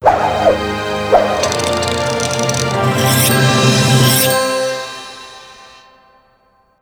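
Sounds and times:
hook pickup mini fanfare: 0.7s - 5.8s.

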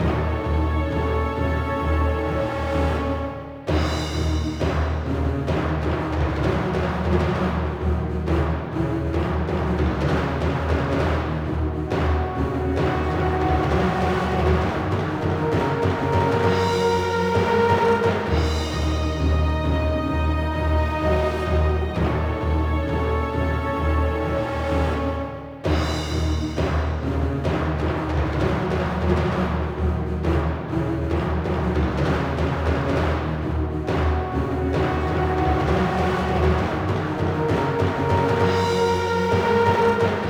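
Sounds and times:
tense music: 0.0s - 40.2s.

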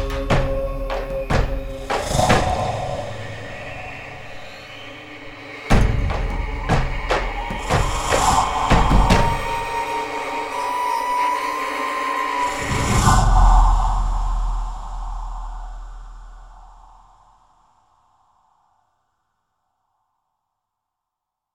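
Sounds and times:
howls: 0.0s - 16.9s.

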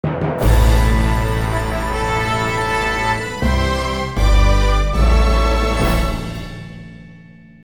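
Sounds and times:
award fanfare: 0.4s - 7.1s.

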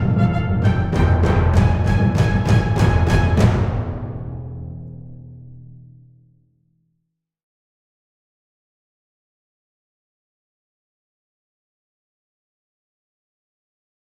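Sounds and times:
long tension music: 0.0s - 6.1s.

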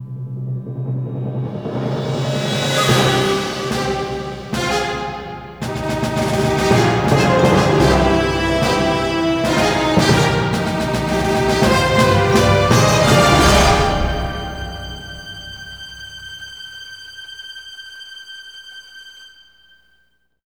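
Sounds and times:
music sting: 1.9s - 16.8s.

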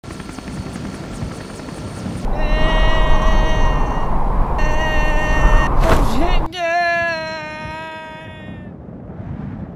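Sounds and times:
parachute: 1.4s - 6.5s.

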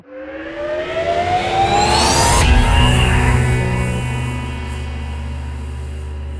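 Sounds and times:
transition end sound: 0.2s - 5.2s.

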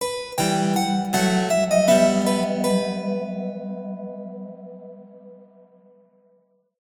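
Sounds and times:
bourree dance music: 0.2s - 3.3s.

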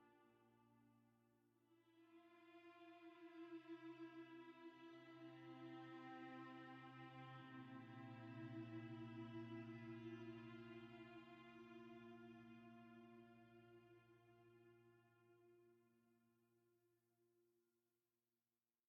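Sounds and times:
cello duet: 2.1s - 15.7s.

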